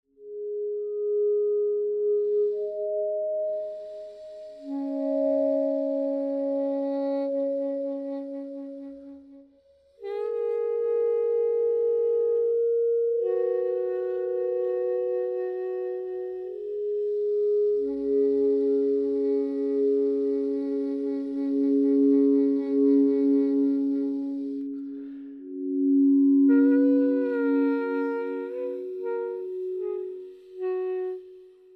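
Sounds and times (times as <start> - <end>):
synth pads: 0.2 - 31.7
toy flute: 1.8 - 31.7.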